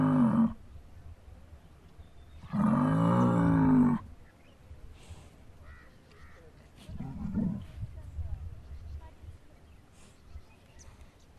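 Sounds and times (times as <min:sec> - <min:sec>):
bull bellowing: 0:00.0 - 0:00.6, 0:02.4 - 0:04.1.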